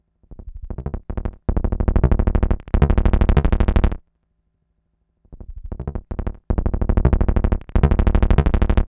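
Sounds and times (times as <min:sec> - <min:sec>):
basslines: 0:00.5 - 0:04.0, 0:05.4 - 0:08.9.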